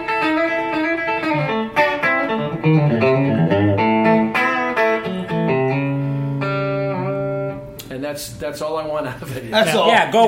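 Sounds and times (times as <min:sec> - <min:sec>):
bright Telecaster-like twangy electric guitar playing single notes: 0:00.0 - 0:08.0
speech: 0:08.2 - 0:10.2.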